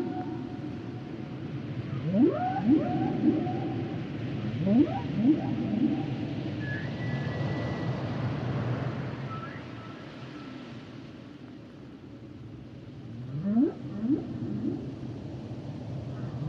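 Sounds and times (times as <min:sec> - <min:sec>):
low rumbling wash: 0:00.0 - 0:16.4
humpback whale calls: 0:02.0 - 0:07.0, 0:13.2 - 0:15.0
thin high whistle: 0:06.6 - 0:08.2.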